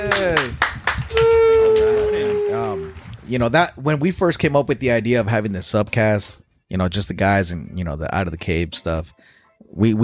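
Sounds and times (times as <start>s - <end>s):
people clapping hands: 0.0s - 3.6s
speech: 3.3s - 10.0s.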